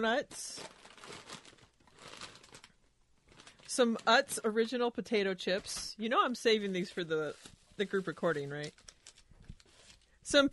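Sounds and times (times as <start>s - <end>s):
speech: 0.0s - 1.3s, 3.7s - 8.9s, 10.3s - 10.5s
gift package wrapping being torn open: 0.5s - 4.8s, 6.7s - 10.2s.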